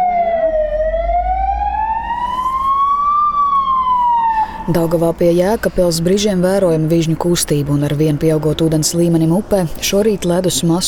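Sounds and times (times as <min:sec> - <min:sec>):
alarm siren: 0:00.0 - 0:04.9
speech: 0:04.7 - 0:10.8.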